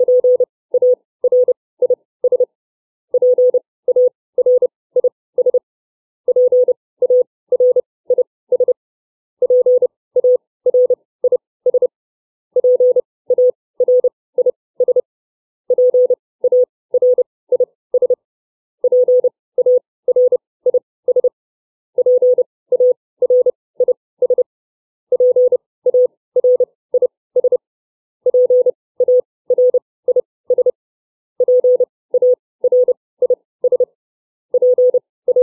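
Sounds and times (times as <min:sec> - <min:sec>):
CW Morse code beeps with Farnsworth timing: 0:00.0 - 0:02.5, 0:03.2 - 0:05.6, 0:06.3 - 0:08.8, 0:09.4 - 0:11.9, 0:12.6 - 0:15.0, 0:15.7 - 0:18.2, 0:18.8 - 0:21.3, 0:22.0 - 0:24.5, 0:25.1 - 0:27.6, 0:28.3 - 0:30.8, 0:31.4 - 0:33.9, 0:34.6 - 0:35.4.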